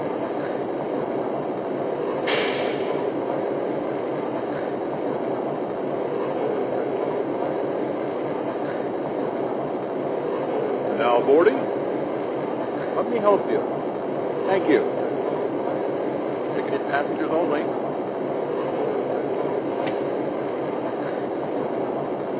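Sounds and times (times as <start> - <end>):
F59PH diesel locomotive: 0.0 - 22.3.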